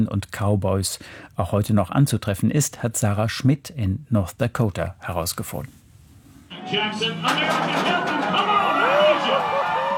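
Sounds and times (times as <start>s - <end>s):
speech: 0.0s - 5.8s, 6.6s - 9.6s
rodeo crowd roaring and cheering: 6.5s - 9.9s.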